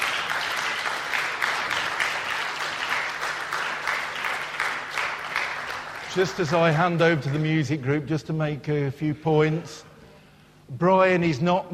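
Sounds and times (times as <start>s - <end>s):
crowd applauding: 0.0s - 7.8s
speech: 6.1s - 9.9s, 10.7s - 11.7s.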